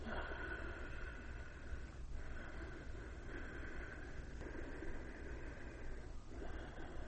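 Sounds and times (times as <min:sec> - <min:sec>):
breathing through a constricted throat, rushing hiss: 0:00.0 - 0:07.0.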